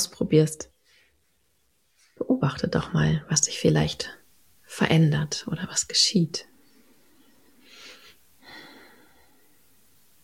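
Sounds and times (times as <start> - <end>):
speech: 0.0 - 0.7, 2.2 - 6.5
deep breath: 7.0 - 9.7.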